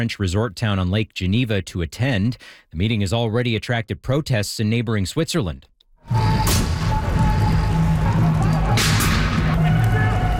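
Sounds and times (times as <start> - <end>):
speech: 0.0 - 6.2
car exploding after demonstrators set it on fire in a street: 6.1 - 10.3
constant dense roaring din: 6.1 - 10.3.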